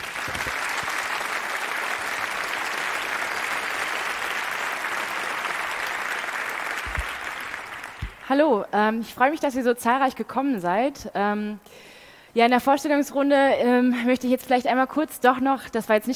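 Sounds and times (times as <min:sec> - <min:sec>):
audience applause: 0:00.0 - 0:08.2
speech: 0:08.3 - 0:16.1.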